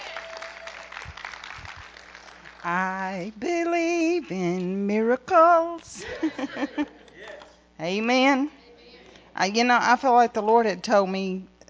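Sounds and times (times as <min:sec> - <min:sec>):
audience hand clapping: 0:00.0 - 0:02.8
speech: 0:02.6 - 0:07.0, 0:07.8 - 0:08.6, 0:09.4 - 0:11.5
laughter: 0:06.0 - 0:07.5.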